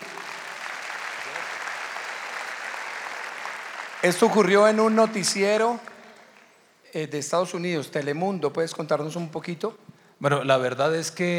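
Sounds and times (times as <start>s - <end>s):
audience applause: 0.0s - 6.5s
speech: 4.0s - 5.9s, 6.9s - 11.3s.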